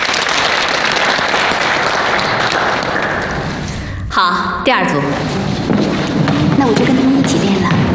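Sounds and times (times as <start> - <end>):
dance troupe applauding a new dancer: 0.0 - 3.9
speech: 4.2 - 5.4, 6.6 - 7.8.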